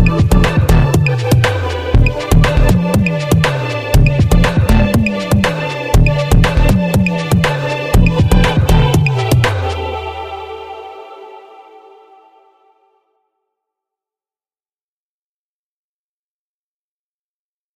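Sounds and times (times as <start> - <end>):
casual dance music: 0.0 - 12.3.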